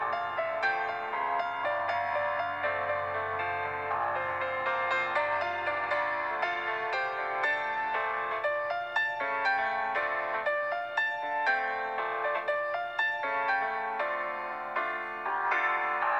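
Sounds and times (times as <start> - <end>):
energetic piano music: 0.0 - 16.1.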